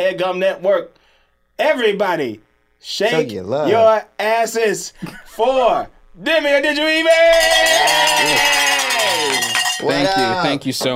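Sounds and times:
speech: 0.0 - 1.0, 1.6 - 8.7, 9.8 - 10.9
bells ringing: 7.1 - 10.3.

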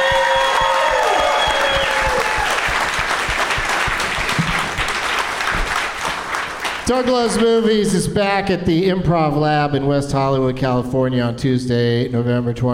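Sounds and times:
audience applause: 0.0 - 7.4
speech: 6.9 - 12.7.

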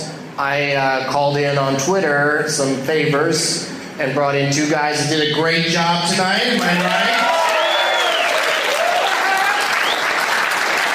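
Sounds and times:
speech: 0.4 - 7.3
audience applause at the Waiting Room Lounge in Omaha, Nebraska: 6.6 - 10.9.

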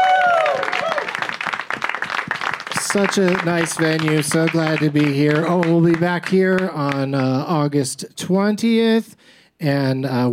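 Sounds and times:
audience applause: 0.0 - 7.4
speech: 2.9 - 10.3.

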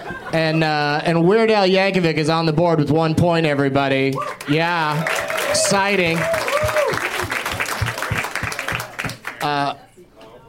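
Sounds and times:
speech: 0.3 - 6.4, 9.4 - 9.8
people clapping: 4.1 - 9.7.

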